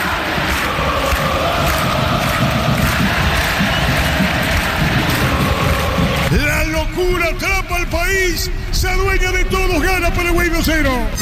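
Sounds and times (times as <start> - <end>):
crowd roaring: 0.0 - 6.4
speech: 7.3 - 11.2.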